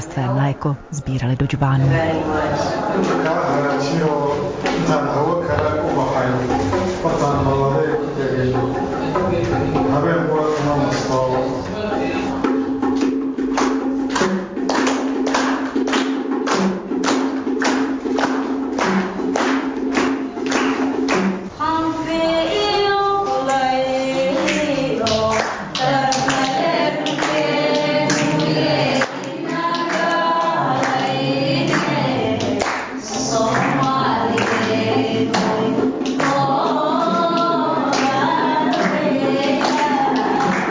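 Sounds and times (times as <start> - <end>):
audience singing along: 0.0 - 12.6, 21.6 - 40.7
speech: 0.2 - 7.6
audience rhythmic clapping: 1.7 - 40.7.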